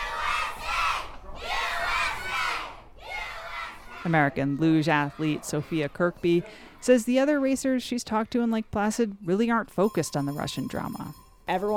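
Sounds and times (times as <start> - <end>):
school kids cheering at a luge race: 0.0 - 4.1
speech: 4.0 - 11.7.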